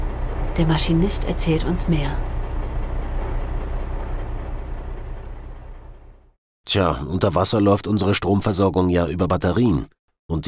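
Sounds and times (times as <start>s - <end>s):
submarine diesel engine running: 0.0s - 6.4s
speech: 0.6s - 2.4s, 6.7s - 10.4s.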